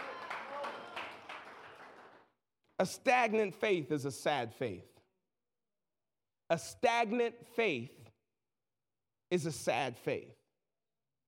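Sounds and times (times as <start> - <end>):
few people clapping: 0.0 - 2.3
speech: 2.8 - 4.9, 6.5 - 8.1, 9.3 - 10.4.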